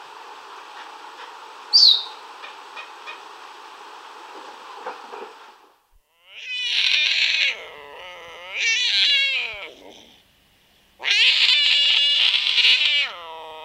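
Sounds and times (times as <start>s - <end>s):
puma meowing in a South American rainforest: 6.2s - 10.2s, 11.0s - 13.6s.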